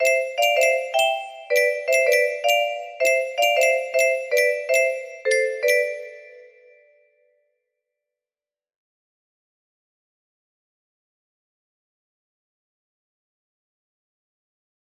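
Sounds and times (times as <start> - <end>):
music box lullaby melody: 0.0 - 6.8.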